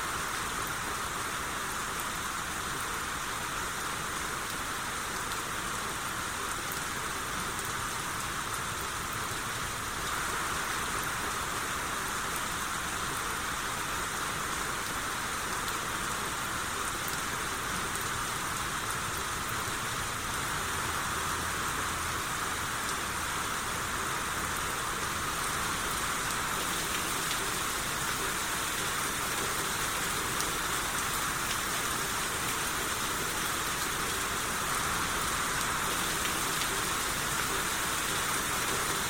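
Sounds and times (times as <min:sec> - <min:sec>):
rain showers: 0:00.0 - 0:39.0.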